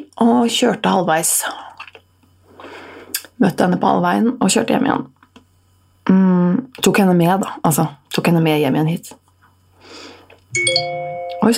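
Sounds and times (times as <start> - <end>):
speech: 0.2 - 1.8, 3.4 - 5.2, 6.8 - 9.2, 9.8 - 11.5
phone message notification chime: 10.5 - 11.5.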